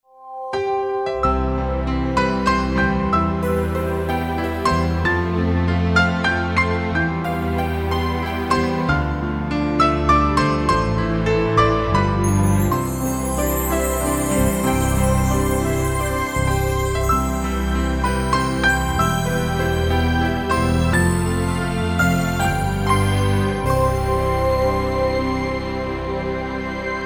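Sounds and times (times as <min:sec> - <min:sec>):
piano theme: 0:00.0 - 0:27.0.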